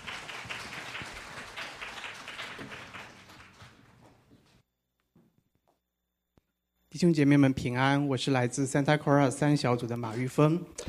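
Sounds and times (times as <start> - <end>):
crowd applauding: 0.0 - 4.6
speech: 7.0 - 10.8.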